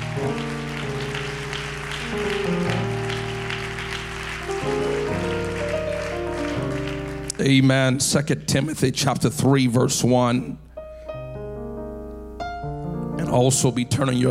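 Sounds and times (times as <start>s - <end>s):
audience clapping: 0.0s - 8.7s
organ or keyboard chords: 0.0s - 14.3s
speech: 2.1s - 2.6s, 7.4s - 10.6s, 13.3s - 14.3s.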